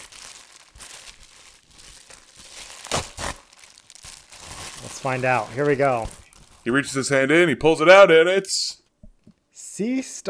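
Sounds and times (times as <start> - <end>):
crinkling wrapping as a package is unwrapped: 0.0 - 7.1
speech: 5.0 - 8.7, 9.8 - 10.2.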